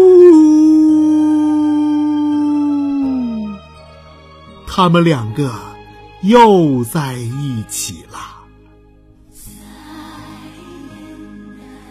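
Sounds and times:
wolf howl: 0.0 - 3.7
speech: 4.8 - 8.2.

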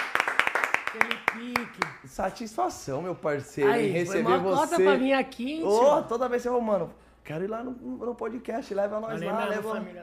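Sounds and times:
hand claps: 0.0 - 2.0
speech: 1.0 - 10.0.

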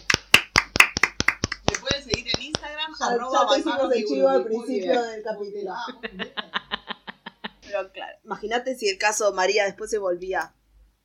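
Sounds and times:
applause: 0.0 - 1.9
speech: 3.0 - 6.5, 7.8 - 10.6
laughter: 5.8 - 7.9.

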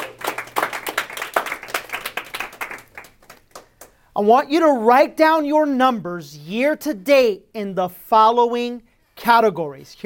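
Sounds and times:
round of applause from a group: 0.0 - 4.0
speech: 4.2 - 10.0.

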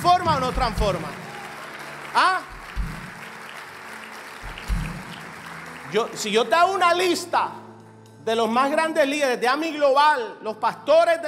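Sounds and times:
audience applauding: 0.0 - 7.2
speech: 0.2 - 1.2, 2.1 - 2.5, 5.9 - 7.6, 8.2 - 11.2.

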